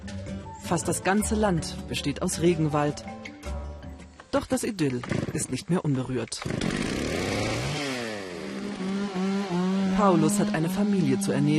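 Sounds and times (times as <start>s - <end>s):
speech: 0.7s - 3.2s, 4.3s - 6.9s, 10.0s - 11.5s
chainsaw felling a tree in rainforest: 6.4s - 11.5s.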